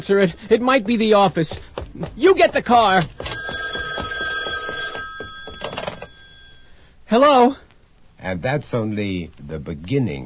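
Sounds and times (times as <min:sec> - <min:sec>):
speech: 0:00.0 - 0:03.2, 0:07.1 - 0:07.6, 0:08.2 - 0:10.2
telephone ringing: 0:02.7 - 0:06.8.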